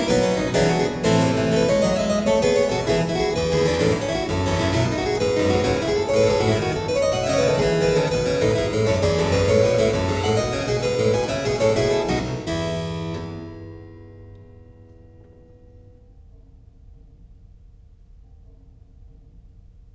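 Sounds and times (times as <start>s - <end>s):
keyboard prelude and fugue in F major: 0.0s - 14.9s.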